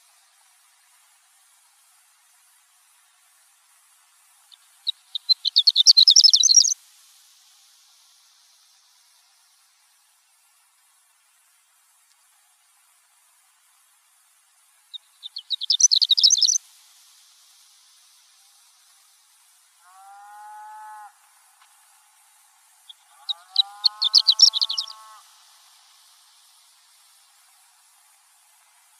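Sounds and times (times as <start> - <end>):
horned lark chirping and twittering: 4.5 - 6.8, 14.9 - 16.6, 22.9 - 25.2.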